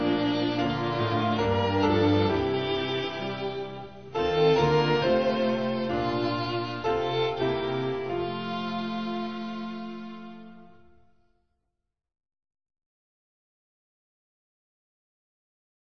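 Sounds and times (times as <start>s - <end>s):
instrumental music: 0.0s - 11.3s.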